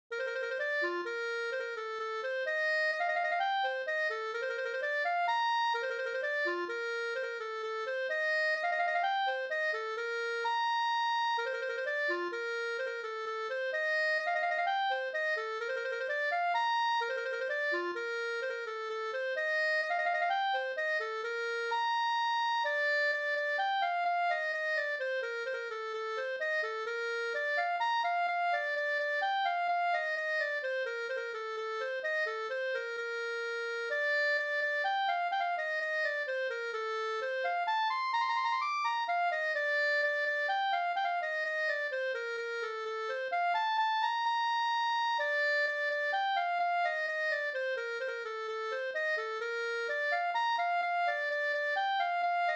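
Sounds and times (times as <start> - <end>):
polska dance tune: 0.1 - 52.5.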